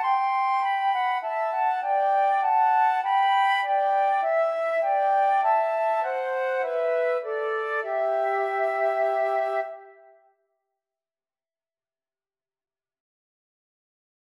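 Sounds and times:
flute trio: 0.0s - 10.1s.

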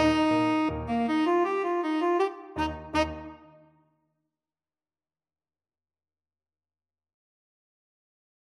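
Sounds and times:
tenor saxophone: 0.0s - 3.7s.

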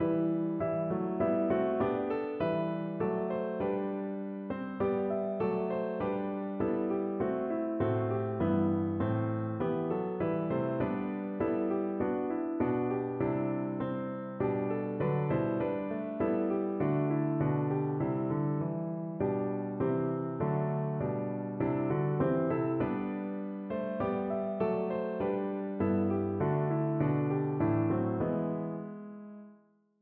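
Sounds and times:
piano: 0.0s - 29.9s.

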